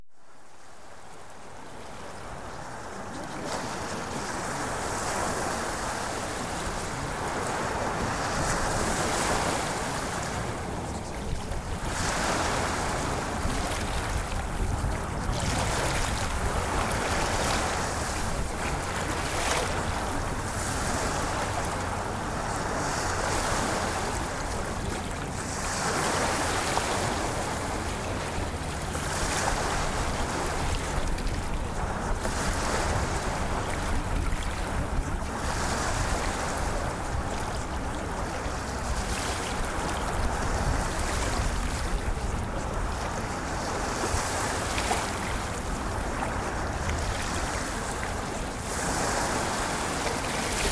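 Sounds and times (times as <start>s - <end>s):
ocean waves: 0.2s - 50.7s.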